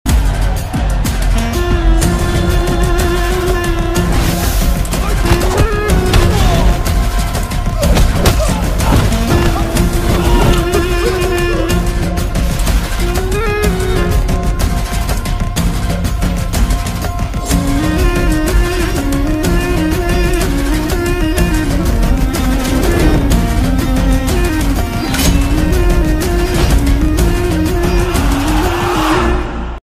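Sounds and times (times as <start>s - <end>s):
villain background music ringtone: 0.1s - 29.8s.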